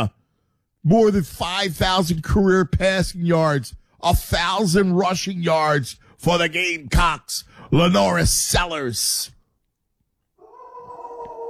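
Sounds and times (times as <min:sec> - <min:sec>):
speech: 0:00.8 - 0:09.4
dog howling: 0:10.4 - 0:11.4.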